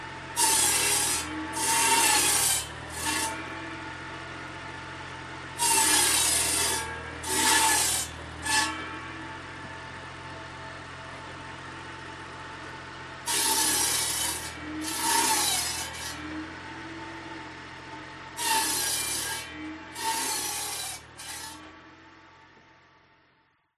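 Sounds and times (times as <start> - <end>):
chainsaw cutting wood: 0.0 - 3.7, 5.6 - 9.2, 13.2 - 17.0, 18.4 - 21.7.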